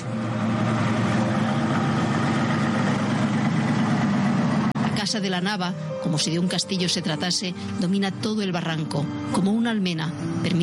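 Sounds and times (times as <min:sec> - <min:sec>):
safari vehicle engine idling: 0:00.0 - 0:05.0
speech: 0:05.1 - 0:10.6.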